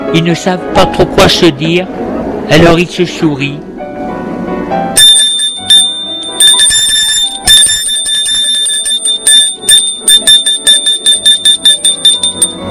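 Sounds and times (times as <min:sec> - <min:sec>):
speech: 0:00.1 - 0:03.7
school bell ringing: 0:05.0 - 0:12.6.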